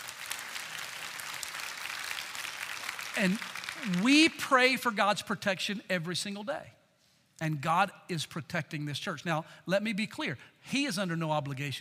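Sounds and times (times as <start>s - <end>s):
audience applauding: 0.0s - 4.3s
speech: 3.2s - 6.8s, 7.4s - 11.7s.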